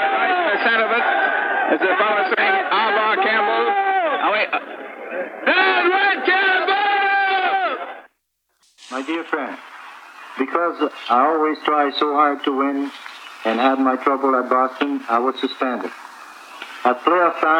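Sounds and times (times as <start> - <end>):
speech: 0.0 - 6.4, 9.0 - 9.7, 10.4 - 16.0, 16.8 - 17.5
crowd jeering at police: 0.0 - 7.9.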